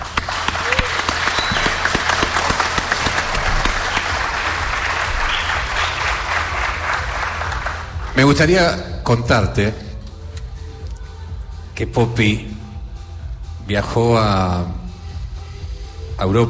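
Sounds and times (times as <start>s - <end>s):
audience applause: 0.0s - 8.3s
speech: 8.2s - 9.8s, 11.8s - 12.6s, 13.7s - 14.8s, 16.2s - 16.4s.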